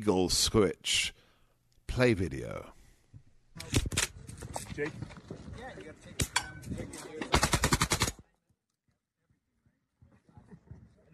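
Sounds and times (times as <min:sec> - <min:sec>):
speech: 0:00.0 - 0:01.2, 0:01.9 - 0:02.8, 0:04.8 - 0:07.4
fully automatic shotgun firing: 0:07.3 - 0:08.2.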